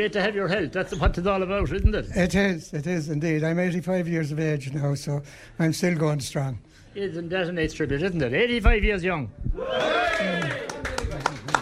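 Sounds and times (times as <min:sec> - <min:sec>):
speech: 0:00.0 - 0:11.0
applause: 0:09.8 - 0:11.6.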